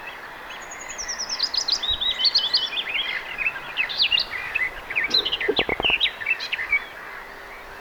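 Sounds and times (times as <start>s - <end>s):
garden warbler singing: 1.0s - 6.9s.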